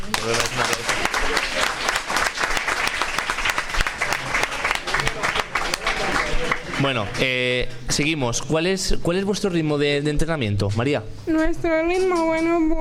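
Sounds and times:
audience applause: 0.0s - 7.4s
speech: 0.2s - 0.6s, 6.8s - 12.7s.

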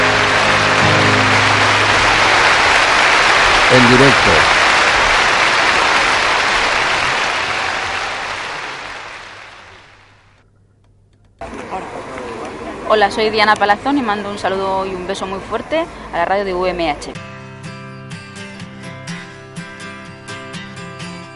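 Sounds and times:
audience applause: 0.0s - 10.3s
speech: 3.7s - 4.6s, 12.9s - 17.3s.

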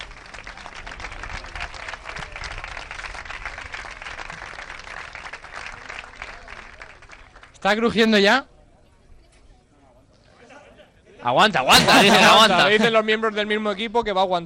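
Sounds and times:
audience applause: 0.0s - 7.6s, 11.7s - 12.8s
speech: 7.6s - 8.5s, 11.2s - 14.4s
laughter: 10.4s - 13.0s.

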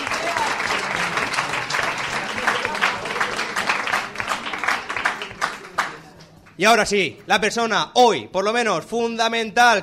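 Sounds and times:
audience applause: 0.0s - 6.3s
speech: 6.6s - 9.8s.

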